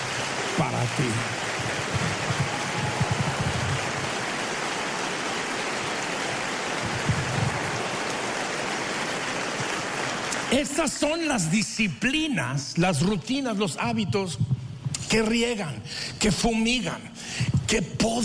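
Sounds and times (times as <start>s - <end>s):
audience applause: 0.0s - 11.5s
speech: 0.6s - 2.1s, 10.5s - 14.5s, 15.1s - 18.2s.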